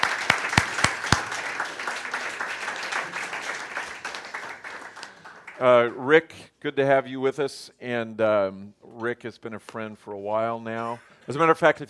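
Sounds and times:
audience applause: 0.0s - 5.8s
speech: 5.6s - 11.8s.

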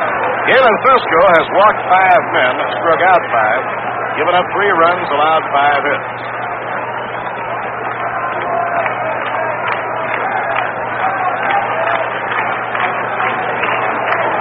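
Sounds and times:
stadium crowd of nearly 20,000 rhythmic clapping at Candlestick Park: 0.0s - 1.2s, 5.7s - 14.3s
speech: 0.5s - 6.4s.

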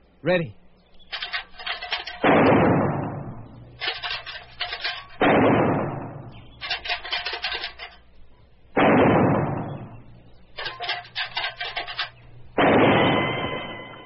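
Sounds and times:
tin can rattling during shooting practice: 1.0s - 2.2s, 3.8s - 5.2s, 6.6s - 8.0s, 10.6s - 12.2s
gunshots at tin cans during shooting practice: 1.2s - 8.0s, 8.7s - 10.0s, 10.6s - 14.0s.

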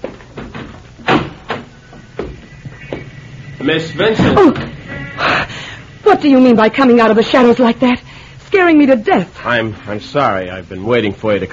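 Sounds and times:
door opening: 0.0s - 5.4s
speech: 3.6s - 4.7s, 6.2s - 11.5s.

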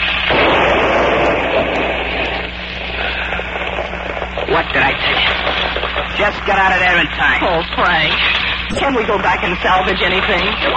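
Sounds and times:
car exploding after catching fire at the seat: 0.0s - 7.0s
speech: 4.6s - 10.7s.

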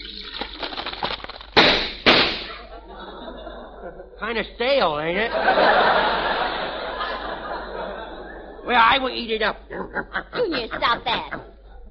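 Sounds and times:
hot cereal crackling and popping with cream: 0.0s - 2.5s
laughter: 2.5s - 4.4s, 5.1s - 9.0s, 9.7s - 11.8s
speech: 4.2s - 6.5s, 8.7s - 11.5s.

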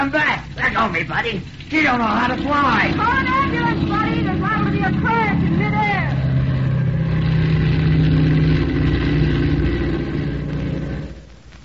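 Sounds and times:
speech: 0.0s - 6.2s
transport plane engines roaring on takeoff: 1.4s - 11.3s.

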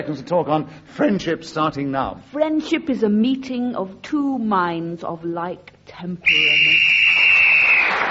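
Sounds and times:
speech: 0.0s - 6.9s
final whistle ending the round: 6.3s - 8.0s.

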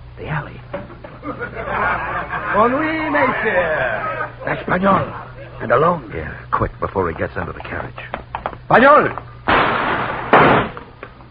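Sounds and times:
speech: 0.2s - 8.1s, 8.7s - 9.3s
laughter: 0.9s - 6.0s
gunshot in an audio drama by an alley near a tavern: 9.5s - 10.8s.

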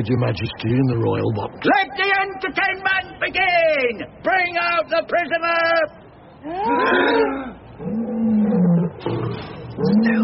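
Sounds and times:
speech: 0.0s - 10.2s
lions roaring: 6.8s - 10.2s.

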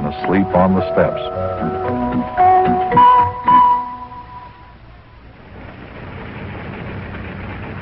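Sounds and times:
speech: 0.2s - 3.0s
car engine as the car drives up: 4.9s - 7.8s.

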